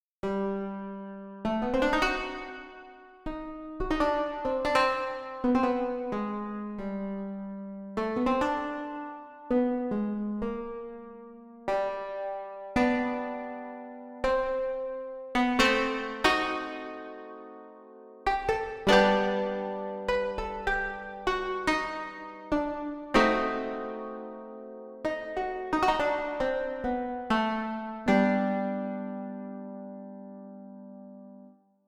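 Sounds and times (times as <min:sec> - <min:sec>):
plucking sound: 0:00.3 - 0:07.3, 0:08.0 - 0:30.5.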